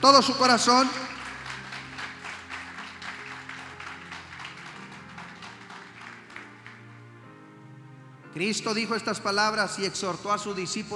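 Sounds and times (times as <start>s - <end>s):
speech: 0.0s - 1.2s, 8.4s - 10.9s
audience applause: 0.0s - 7.0s.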